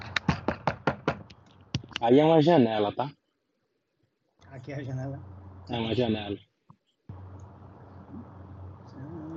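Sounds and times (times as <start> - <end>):
knocking on a door: 0.3 - 1.3
speech: 2.0 - 3.2, 4.6 - 6.5.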